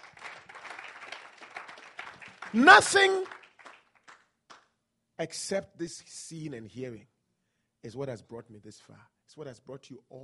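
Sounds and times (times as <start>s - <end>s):
audience clapping: 0.0s - 4.7s
speech: 2.5s - 3.4s, 5.2s - 7.1s, 7.8s - 10.2s.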